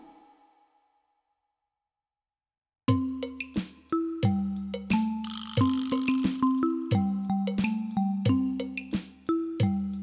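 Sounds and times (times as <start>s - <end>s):
music medley loop: 2.9s - 10.0s.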